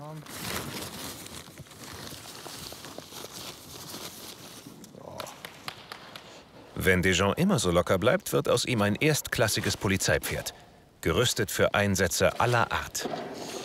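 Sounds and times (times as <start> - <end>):
continuous rustling, tearing and crackling noise: 0.0 - 4.9
speech: 6.8 - 13.3.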